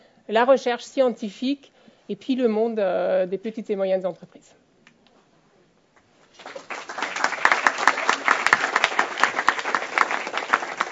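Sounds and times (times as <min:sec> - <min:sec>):
speech: 0:00.3 - 0:04.6
audience applause: 0:06.4 - 0:10.9.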